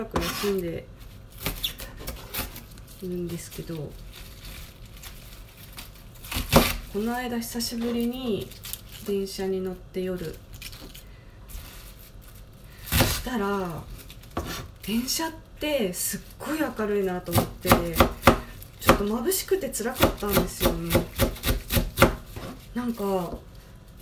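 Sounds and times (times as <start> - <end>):
knife chopping napa cabbage on a cutting board: 0.0 - 0.6, 6.2 - 7.1, 12.8 - 13.5, 14.3 - 14.8, 17.2 - 23.4
speech: 0.0 - 1.1, 3.0 - 4.3, 6.9 - 10.5, 13.3 - 13.9, 14.9 - 18.2, 19.0 - 21.1, 22.8 - 23.5.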